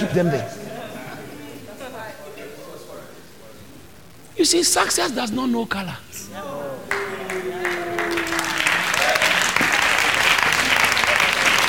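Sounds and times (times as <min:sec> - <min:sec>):
speech: 0:00.1 - 0:00.6, 0:04.4 - 0:06.8
crowd applause: 0:06.7 - 0:11.6
brief tonal voice line: 0:06.8 - 0:09.2.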